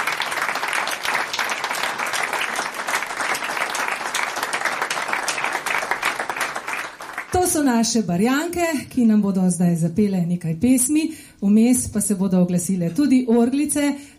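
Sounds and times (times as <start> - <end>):
audience applause: 0.0 - 7.4
speech: 7.5 - 14.1.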